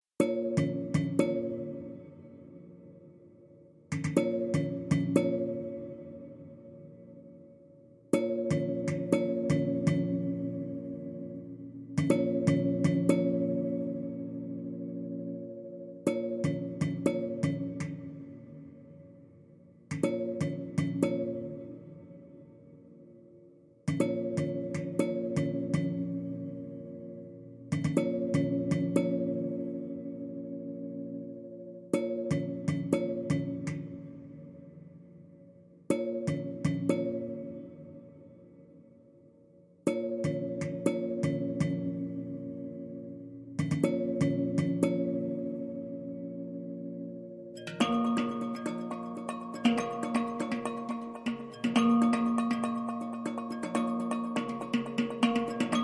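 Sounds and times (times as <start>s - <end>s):
tuned percussion: 0.2s - 2.3s, 3.9s - 6.5s, 8.1s - 18.6s, 19.9s - 22.1s, 23.9s - 30.2s, 31.9s - 34.5s, 35.9s - 38.0s, 39.9s - 46.5s, 47.5s - 55.8s.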